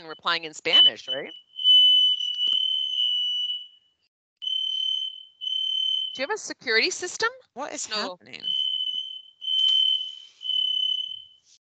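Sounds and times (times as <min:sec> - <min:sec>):
smoke detector chirping with low battery: 0:00.0 - 0:06.9, 0:08.3 - 0:11.5
speech: 0:00.1 - 0:01.5, 0:06.2 - 0:08.6.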